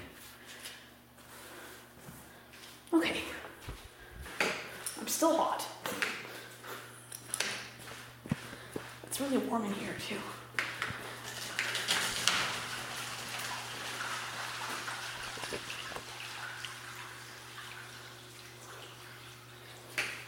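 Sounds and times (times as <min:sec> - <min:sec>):
low electrical hum: 0:00.0 - 0:20.2
speech: 0:02.9 - 0:03.3, 0:05.2 - 0:05.7, 0:09.3 - 0:10.4
binaural water trickling and splashing: 0:11.5 - 0:20.2
drips: 0:12.7 - 0:20.2.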